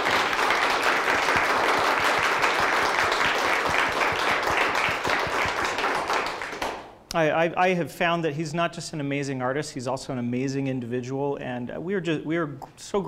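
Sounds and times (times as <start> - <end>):
audience applause: 0.0 - 6.9
speech: 7.2 - 13.0.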